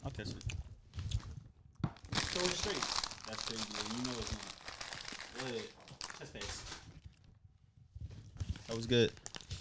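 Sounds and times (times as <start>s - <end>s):
speech: 0.0s - 0.7s, 2.4s - 4.6s, 5.4s - 6.8s, 8.7s - 9.3s
package from a P.O. box being opened: 2.0s - 7.0s, 8.6s - 9.5s.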